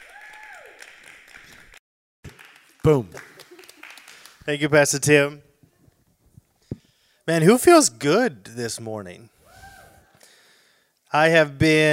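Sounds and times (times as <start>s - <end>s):
audience applause: 0.0s - 4.5s
speech: 2.8s - 3.3s, 4.5s - 5.5s, 7.3s - 9.3s, 11.1s - 11.9s.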